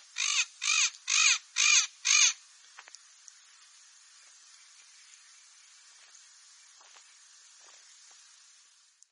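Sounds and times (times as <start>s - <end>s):
parrot giving harsh raspy squawks: 0.2s - 2.4s.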